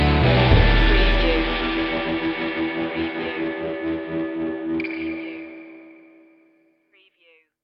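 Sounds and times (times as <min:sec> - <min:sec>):
music stinger: 0:00.0 - 0:05.5.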